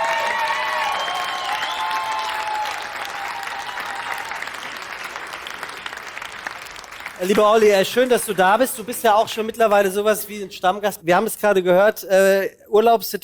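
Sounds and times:
whistles: 0:00.0 - 0:05.1
audience applause: 0:00.0 - 0:10.1
speech: 0:07.2 - 0:13.2.

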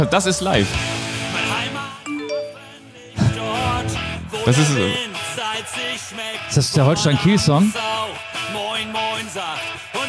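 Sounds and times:
speech: 0:00.0 - 0:01.0, 0:04.4 - 0:10.0
busy mix of voices: 0:00.0 - 0:09.5
message notification chime: 0:02.1 - 0:02.8.

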